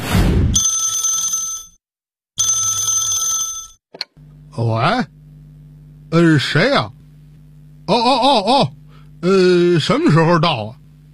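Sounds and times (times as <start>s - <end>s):
telephone bell ringing at a home in a residential compound: 0.6s - 1.8s, 2.4s - 3.8s
speech: 4.6s - 5.2s, 6.1s - 7.0s, 7.9s - 10.8s.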